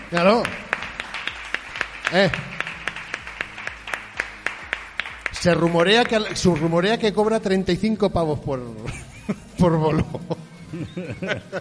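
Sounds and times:
sharp claps: 0.0 - 7.1
speech: 0.1 - 0.7, 2.1 - 2.5, 5.4 - 11.5
laughter: 8.8 - 11.5.

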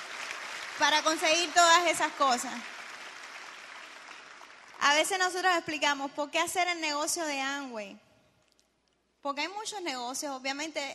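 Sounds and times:
audience applause: 0.0 - 4.8
speech: 0.8 - 2.8, 4.8 - 8.0, 9.2 - 10.9.

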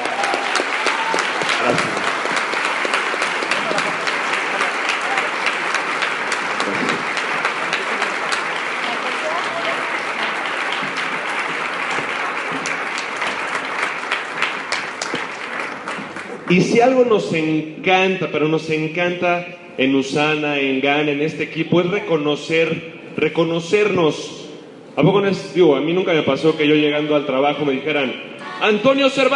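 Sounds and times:
audience applause: 0.0 - 16.5
speech: 1.7 - 1.9, 16.5 - 24.4, 25.0 - 29.3.

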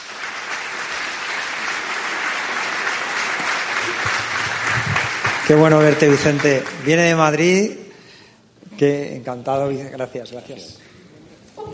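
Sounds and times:
audience applause: 0.0 - 7.4
speech: 5.5 - 7.8, 8.8 - 10.8.

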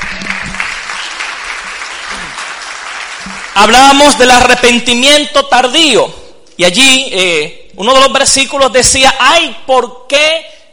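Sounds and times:
audience applause: 0.0 - 4.1
speech: 3.6 - 10.7.

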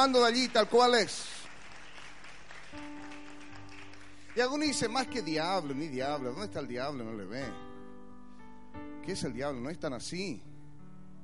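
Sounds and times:
speech: 0.0 - 1.3, 4.4 - 7.7, 8.8 - 10.5
crowd applauding: 0.0 - 5.3.

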